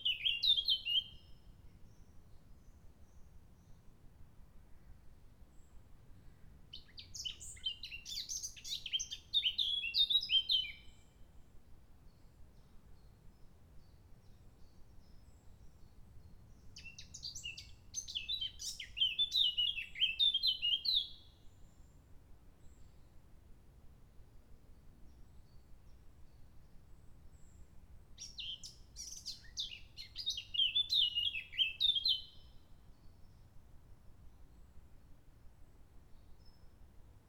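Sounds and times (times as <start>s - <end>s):
blackcap singing: 0.0s - 1.2s, 6.8s - 10.8s, 16.8s - 21.2s, 28.2s - 32.5s.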